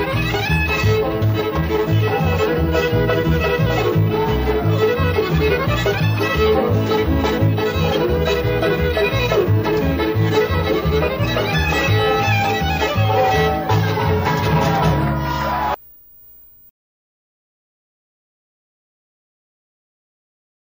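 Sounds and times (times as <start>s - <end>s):
fiddle tune: 0.0s - 15.8s.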